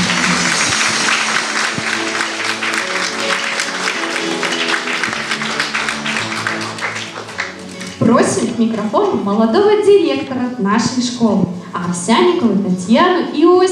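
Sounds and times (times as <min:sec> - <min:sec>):
audience applause: 0:00.0 - 0:08.4
speech: 0:08.6 - 0:13.7.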